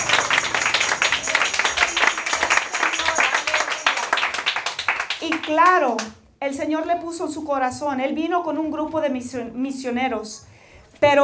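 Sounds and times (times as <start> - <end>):
audience applause: 0.0 - 5.6
speech: 5.5 - 11.2.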